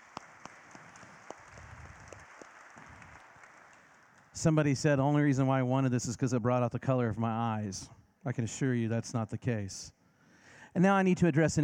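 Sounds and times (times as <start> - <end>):
audience applause: 0.0 - 4.4
speech: 4.4 - 10.0, 10.7 - 11.6.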